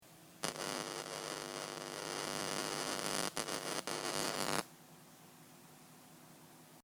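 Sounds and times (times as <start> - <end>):
monitor interference noise: 0.4 - 4.7.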